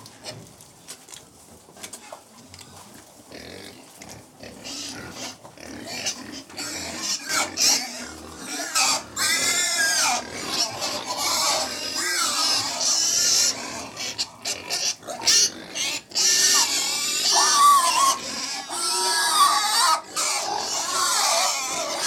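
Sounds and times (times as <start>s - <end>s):
hundred domestic pigs feeding, snuffling, chomping and grunting: 0.0s - 22.0s.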